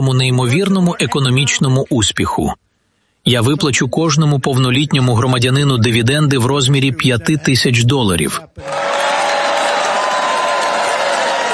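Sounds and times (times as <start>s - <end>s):
speech: 0.0s - 8.9s
restrained crowd applause: 8.6s - 11.5s.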